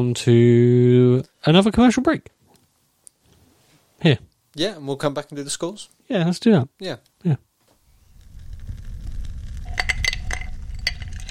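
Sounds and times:
speech: 0.0s - 2.4s, 4.0s - 7.5s
low rumbling background: 8.0s - 11.2s
resin dice clinking in a glass: 9.7s - 11.2s.

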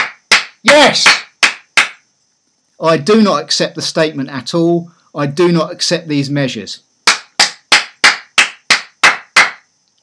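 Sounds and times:
hand claps: 0.0s - 2.0s, 7.0s - 9.7s
speech: 0.6s - 1.2s, 2.8s - 6.9s.

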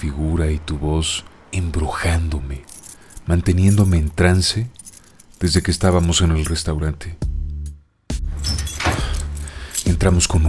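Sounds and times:
speech: 0.0s - 4.8s, 5.4s - 7.3s, 9.9s - 10.4s
keys jangling while locking a door: 2.6s - 6.7s, 8.5s - 10.0s.

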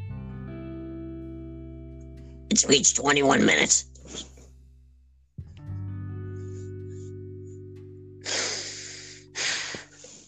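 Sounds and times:
speech: 2.5s - 4.3s
heavy breathing: 6.3s - 7.4s, 8.2s - 10.2s.

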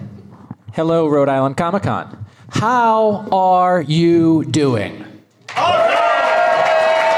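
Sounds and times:
speech: 0.8s - 5.0s
convention crowd cheering and shouting: 5.5s - 7.1s.

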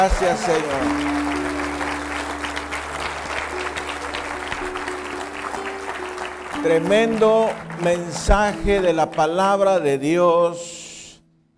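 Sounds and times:
speech: 0.0s - 1.4s, 6.6s - 10.7s
audience applause: 0.0s - 9.4s.

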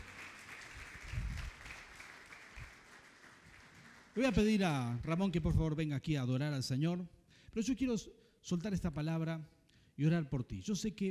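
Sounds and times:
crowd clapping: 0.0s - 5.6s
speech: 4.2s - 11.0s.

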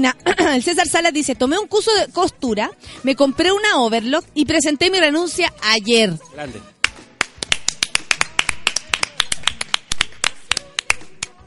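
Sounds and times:
speech: 0.0s - 6.7s
applause: 6.8s - 11.4s.

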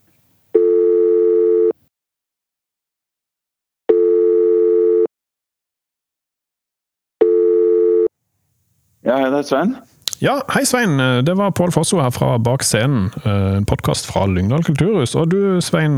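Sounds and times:
telephone ringing tone during a call: 0.5s - 1.8s, 3.9s - 5.1s, 7.2s - 8.1s
speech: 9.1s - 15.9s.

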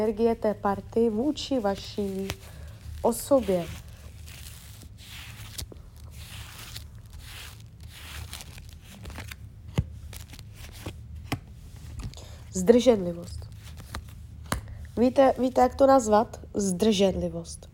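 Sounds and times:
speech: 0.0s - 3.8s, 12.6s - 13.4s, 15.0s - 17.7s
shuffling cards: 1.5s - 12.3s, 13.4s - 14.7s.

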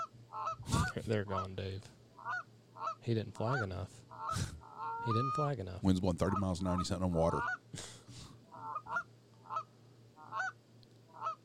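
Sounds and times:
goose call honks: 0.0s - 1.6s, 2.2s - 5.6s, 6.2s - 7.6s, 8.5s - 10.6s
speech: 1.0s - 8.0s.

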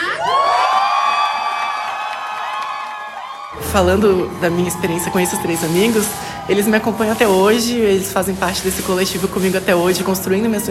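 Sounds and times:
audience cheering: 0.0s - 9.3s
audience applause: 0.1s - 8.1s
speech: 3.7s - 10.6s.

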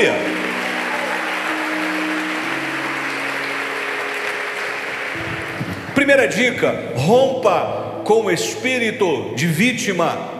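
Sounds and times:
audience applause: 0.0s - 6.0s
speech: 6.1s - 10.3s.

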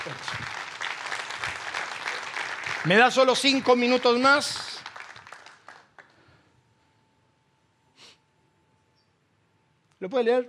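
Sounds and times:
audience applauding: 0.0s - 6.2s
speech: 2.8s - 4.7s, 10.0s - 10.4s.

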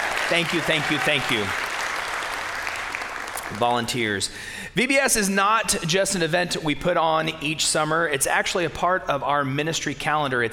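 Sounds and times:
audience round of applause: 0.0s - 3.8s
speech: 0.3s - 1.6s, 3.5s - 10.5s.

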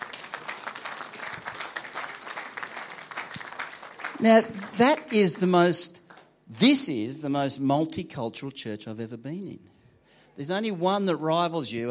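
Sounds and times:
audience clapping: 0.0s - 6.4s
speech: 4.2s - 6.0s, 6.6s - 9.7s, 10.4s - 11.8s.

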